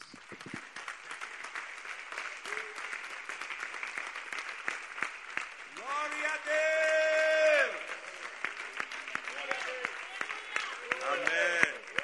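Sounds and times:
audience applause: 0.0 - 12.0.

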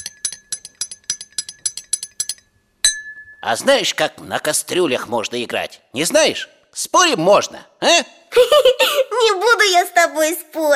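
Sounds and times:
glass jars played as instruments: 0.0 - 3.6
speech: 3.4 - 10.7.

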